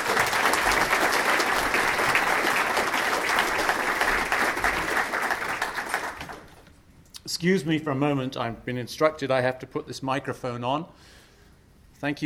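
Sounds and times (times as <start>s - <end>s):
audience applause welcoming a speaker: 0.0s - 6.6s
speech: 7.4s - 11.2s, 12.0s - 12.2s.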